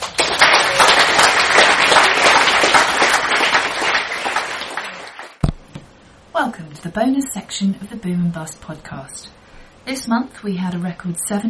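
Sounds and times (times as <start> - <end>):
audience applause: 0.0 - 5.4
speech: 6.8 - 11.4.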